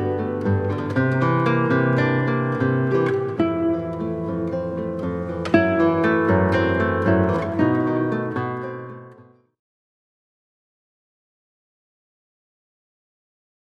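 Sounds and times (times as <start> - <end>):
milonga music: 0.0 - 9.3.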